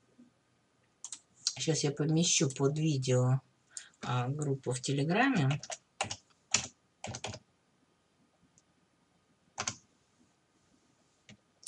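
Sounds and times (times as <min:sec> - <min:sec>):
speech: 0:01.6 - 0:03.5, 0:04.1 - 0:05.8
computer keyboard typing: 0:05.4 - 0:07.4, 0:09.6 - 0:09.8.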